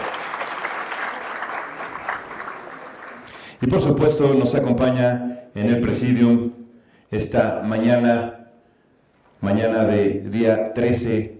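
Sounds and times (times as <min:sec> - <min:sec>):
audience applause: 0:00.0 - 0:03.5
speech: 0:03.6 - 0:08.4, 0:09.4 - 0:11.3.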